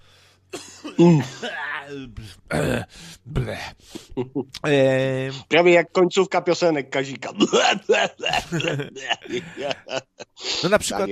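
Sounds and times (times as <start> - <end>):
person clearing throat and coughing: 0.6 - 3.1, 7.4 - 9.8
speech: 1.0 - 11.0
laughter: 7.4 - 11.0.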